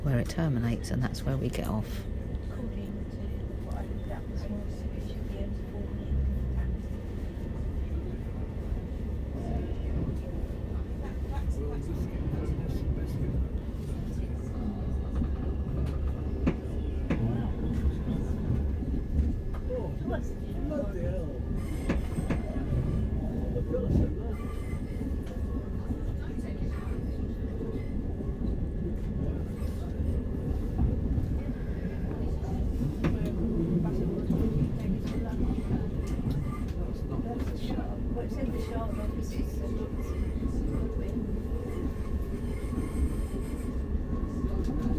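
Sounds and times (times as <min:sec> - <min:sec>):
train rumbling toward Waterloo East: 0:00.0 - 0:44.9
speech: 0:00.1 - 0:02.1.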